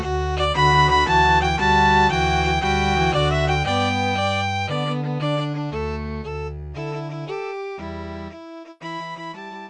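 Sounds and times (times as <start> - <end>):
string quartet playing: 0.0 - 6.3.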